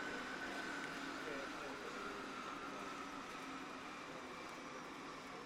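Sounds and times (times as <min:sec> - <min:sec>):
King Air 350 aircraft shutting down: 0:00.0 - 0:05.3.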